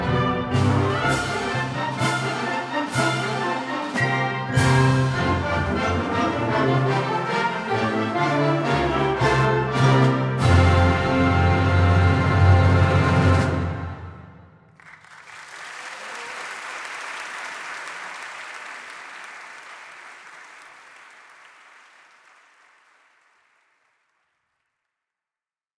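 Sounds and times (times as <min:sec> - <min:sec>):
symphonic band playing: 0:00.0 - 0:14.4.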